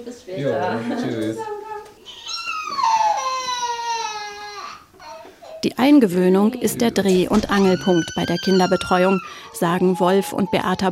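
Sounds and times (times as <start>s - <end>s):
speech: 0.0s - 1.7s, 5.7s - 10.8s
small child crying: 2.0s - 5.6s, 7.3s - 10.8s.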